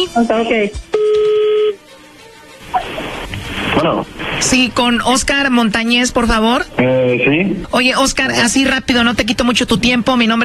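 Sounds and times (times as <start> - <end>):
speech: 0.0 - 1.0, 3.7 - 10.4
electronic telephone tone while dialling: 1.0 - 1.8.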